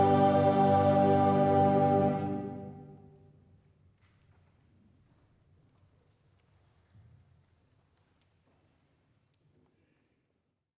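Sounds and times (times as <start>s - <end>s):
choir singing a chorale: 0.0s - 3.1s.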